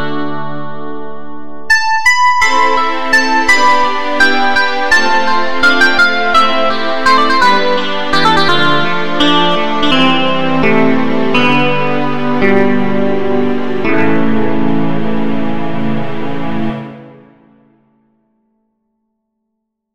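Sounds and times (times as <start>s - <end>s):
clean electric guitar: 0.0s - 17.6s.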